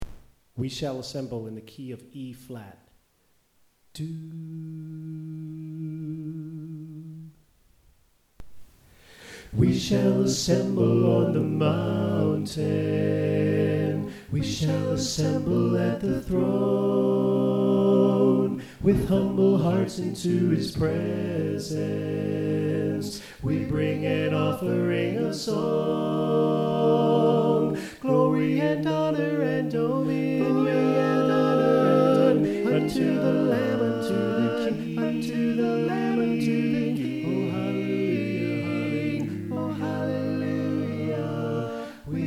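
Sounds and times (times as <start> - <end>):
soprano singing: 9.6 - 42.2.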